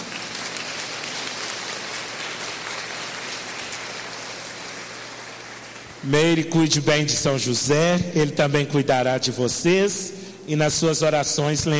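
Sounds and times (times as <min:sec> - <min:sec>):
audience applause: 0:00.0 - 0:06.0
speech: 0:06.0 - 0:11.7.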